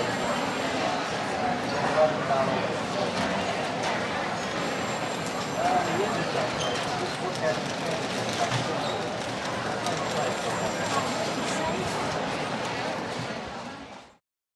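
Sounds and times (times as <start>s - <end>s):
crowd on department store ground floor: 0.0s - 14.2s
cash registers in a department store: 4.4s - 12.2s.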